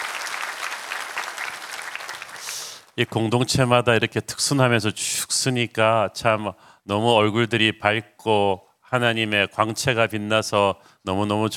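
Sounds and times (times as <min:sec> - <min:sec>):
audience applause: 0:00.0 - 0:02.9
speech: 0:03.0 - 0:11.5.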